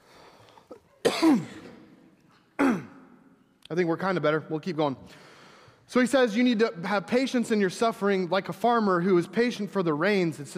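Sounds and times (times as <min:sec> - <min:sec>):
person clearing throat and coughing: 0:00.7 - 0:02.0, 0:02.6 - 0:03.1
speech: 0:01.2 - 0:01.6, 0:03.7 - 0:05.3, 0:05.9 - 0:10.5.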